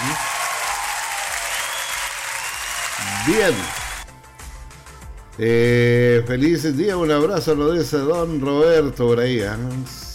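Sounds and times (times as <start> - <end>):
audience applause: 0.0 - 4.1
speech: 3.0 - 3.8, 5.4 - 10.0.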